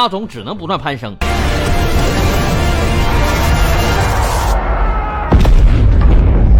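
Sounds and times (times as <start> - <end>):
speech: 0.0 - 3.0
explosions: 1.4 - 6.5
naval artillery fire: 1.6 - 6.5.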